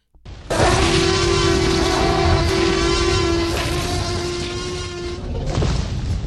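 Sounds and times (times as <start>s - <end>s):
dinosaur roar made from blended animal calls: 0.5s - 5.5s
droning tone: 0.5s - 5.8s.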